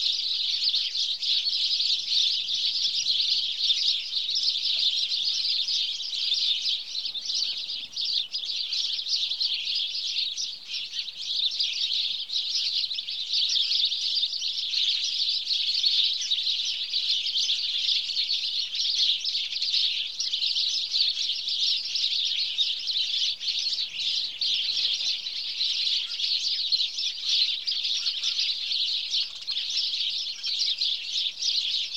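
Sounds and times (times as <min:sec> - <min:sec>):
House Sparrow Passer domesticus calls: 0:00.0 - 0:31.9.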